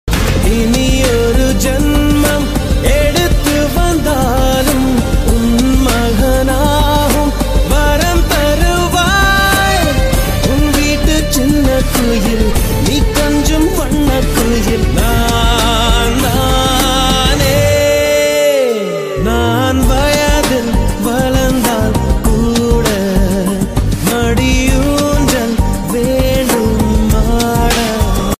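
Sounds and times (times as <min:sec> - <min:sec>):
Tamil mother love status song: 0:00.1 - 0:28.3.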